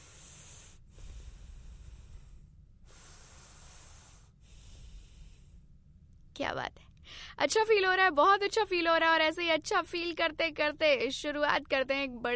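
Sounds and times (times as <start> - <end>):
deep breathing exercise: 0.0 - 6.0
speech: 6.4 - 12.3.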